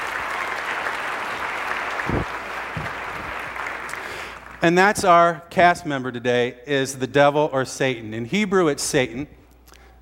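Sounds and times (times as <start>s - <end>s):
audience applause: 0.0s - 4.6s
speech: 4.6s - 9.4s.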